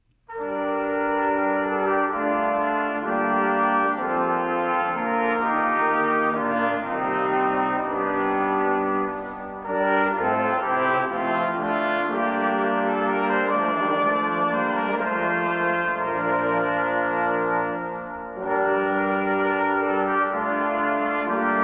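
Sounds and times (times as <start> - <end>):
moderato orchestral fanfare: 0.3 - 21.6.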